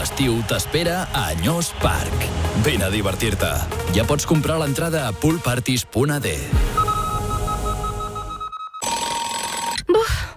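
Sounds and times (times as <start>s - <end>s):
speech: 0.2s - 6.9s
alarm clock ringing: 6.8s - 9.8s.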